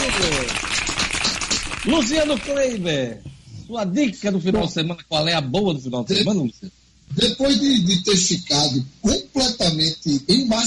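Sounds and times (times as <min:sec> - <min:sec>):
many hands clapping in applause: 0:00.0 - 0:02.8
speech: 0:01.8 - 0:10.6.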